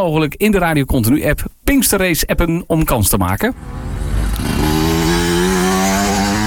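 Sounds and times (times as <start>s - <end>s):
speech: 0.0s - 4.8s
motocross motorcycle engine revving loudly: 3.6s - 6.4s.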